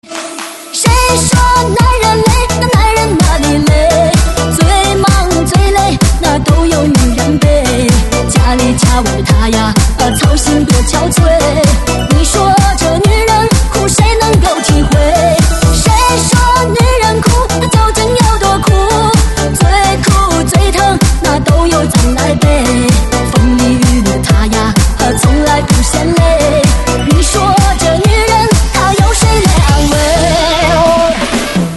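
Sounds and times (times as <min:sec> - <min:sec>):
DJ mix: 0:00.0 - 0:31.7.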